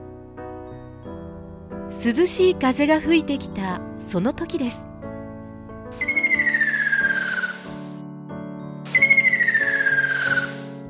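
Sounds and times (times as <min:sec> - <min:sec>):
soft steady music: 0:00.0 - 0:10.8
speech: 0:01.9 - 0:04.9
ruddy kingfisher call: 0:06.0 - 0:07.8, 0:08.9 - 0:10.8.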